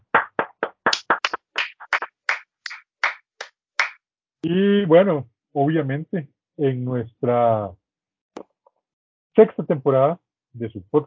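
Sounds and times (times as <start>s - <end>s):
applause: 0.0s - 3.2s
speech: 4.4s - 7.8s, 9.4s - 11.0s.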